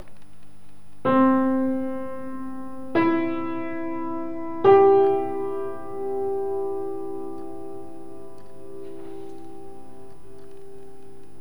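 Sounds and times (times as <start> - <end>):
pianoforte: 0.0 - 11.3.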